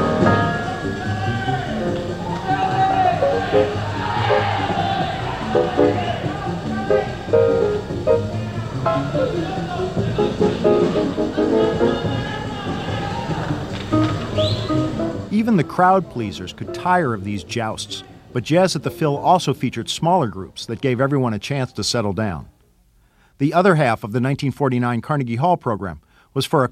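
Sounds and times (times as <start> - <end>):
loud audience noise: 0.0 - 17.2
quiet piano solo: 0.0 - 17.7
speech: 15.7 - 22.6, 23.4 - 26.7.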